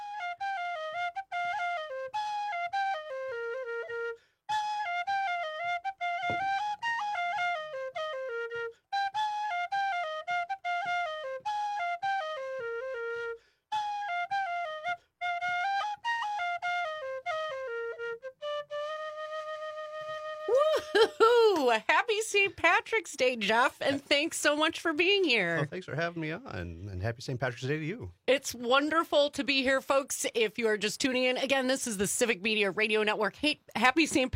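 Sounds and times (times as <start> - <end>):
Irish tin whistle played live in a studio: 0.0 - 21.1
laughter: 20.5 - 21.8, 25.6 - 26.4
speech: 21.7 - 34.3.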